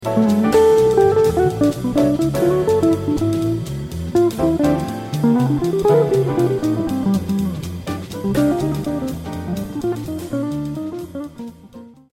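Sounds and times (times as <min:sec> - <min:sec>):
instrument tuning: 0:00.1 - 0:11.3.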